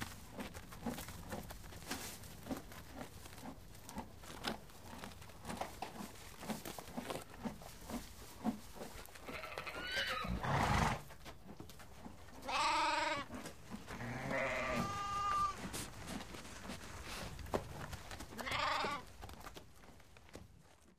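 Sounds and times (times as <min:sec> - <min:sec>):
horse chewing: 0:00.0 - 0:20.9
sheep bleating: 0:12.4 - 0:13.3, 0:13.9 - 0:15.6, 0:18.4 - 0:19.0.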